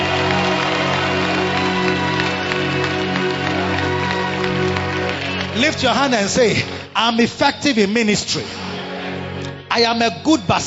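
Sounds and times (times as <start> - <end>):
audience clapping hands: 0.0 - 7.2
sustained droning musical backdrop: 0.0 - 10.6
speech: 5.7 - 8.6, 9.8 - 10.6.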